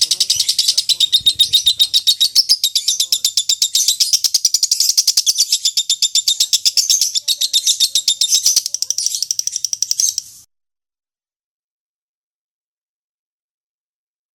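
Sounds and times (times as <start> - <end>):
lovebird song of scratchy chirps: 0.0 - 10.5.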